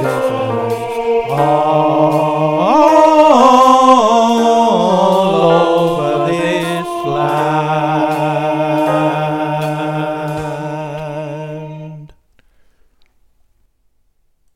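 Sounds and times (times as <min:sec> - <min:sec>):
swing melody: 0:00.0 - 0:12.0
soprano vocals: 0:00.0 - 0:12.2.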